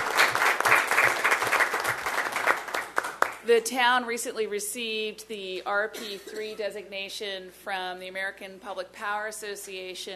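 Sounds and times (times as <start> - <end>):
audience clapping: 0.0 - 3.5
speech: 3.5 - 10.1.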